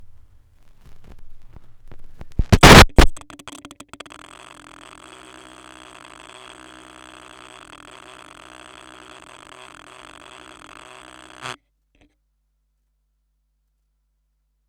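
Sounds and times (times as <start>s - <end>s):
vinyl record noise: 0.6s - 11.5s.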